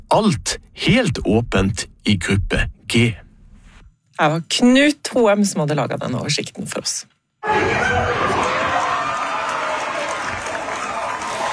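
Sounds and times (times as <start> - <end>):
speech: 0.2 - 3.2, 4.2 - 8.8
football fans cheering and applauding inside a bar: 7.5 - 11.5.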